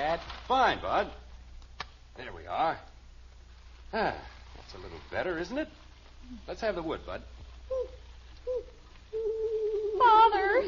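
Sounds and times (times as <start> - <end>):
speech: 0.1 - 1.2, 2.2 - 2.9, 3.9 - 10.6
owl hooting: 7.7 - 10.6.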